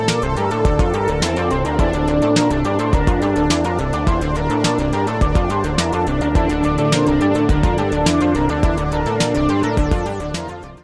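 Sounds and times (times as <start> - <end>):
music jam: 0.0 - 10.7.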